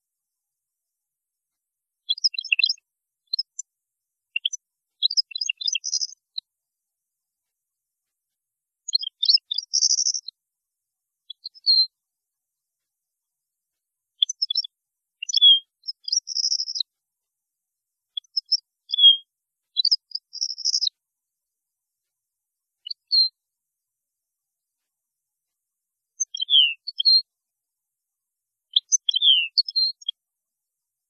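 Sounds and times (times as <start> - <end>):
European goldfinch singing: 2.1 - 3.6, 4.4 - 6.2, 8.9 - 10.3, 14.2 - 16.8, 18.2 - 19.2, 19.8 - 20.9, 26.2 - 27.2, 28.7 - 30.1.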